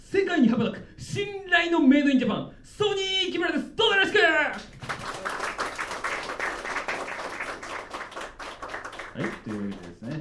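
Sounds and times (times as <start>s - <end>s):
speech: 0.5s - 4.7s
audience applause: 4.8s - 10.1s.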